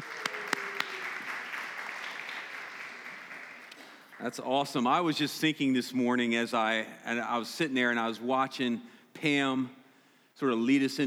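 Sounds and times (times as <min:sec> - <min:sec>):
audience applause at a morning worship gathering: 0:00.0 - 0:04.4
speech: 0:04.2 - 0:09.8, 0:10.4 - 0:11.0.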